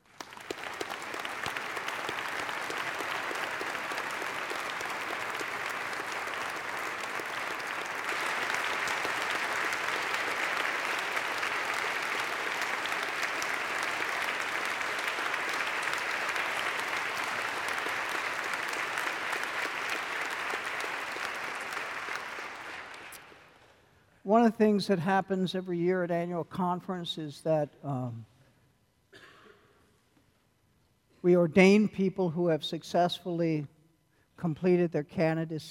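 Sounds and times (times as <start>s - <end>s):
audience applause: 0.0s - 23.2s
speech: 24.3s - 28.3s, 31.2s - 33.7s, 34.4s - 35.6s.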